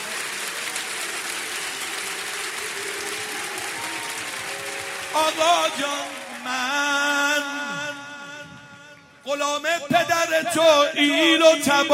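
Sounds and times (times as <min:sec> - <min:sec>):
religious gathering Heydari clapping: 0:00.0 - 0:08.3
speech: 0:05.2 - 0:08.0, 0:09.3 - 0:11.9.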